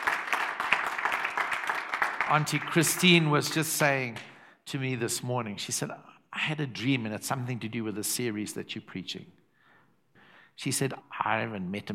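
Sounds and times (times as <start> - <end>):
audience hand clapping: 0.0 - 4.3
speech: 2.3 - 9.4, 10.6 - 11.9.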